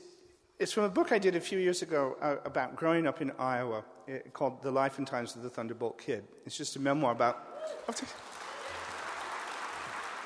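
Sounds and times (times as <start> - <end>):
speech: 0.6 - 8.3
audience clapping at an author's book reading: 7.7 - 10.2.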